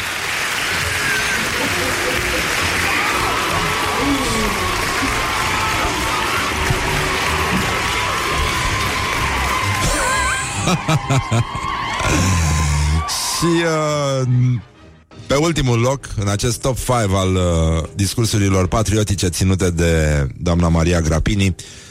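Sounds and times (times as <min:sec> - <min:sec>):
audience applause and cheering: 0:00.0 - 0:14.4
laughter: 0:01.1 - 0:05.4, 0:09.7 - 0:13.0
speech: 0:10.7 - 0:12.5, 0:13.4 - 0:14.7, 0:15.3 - 0:21.8.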